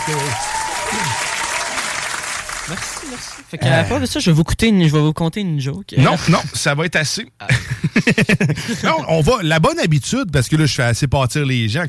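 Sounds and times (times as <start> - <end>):
audience applause: 0.0 - 3.6
speech: 0.1 - 1.3, 2.7 - 11.8
laughter: 7.4 - 9.2.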